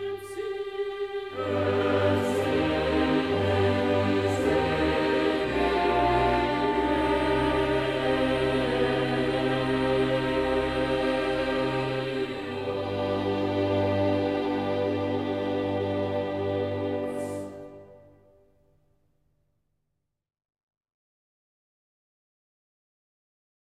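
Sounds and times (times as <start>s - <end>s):
requiem offertory movement: 0.0s - 18.4s.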